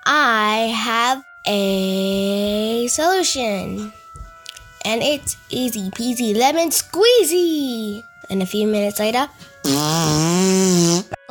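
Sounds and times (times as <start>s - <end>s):
speech: 0.1s - 4.0s, 4.8s - 11.2s
fart: 9.6s - 11.2s.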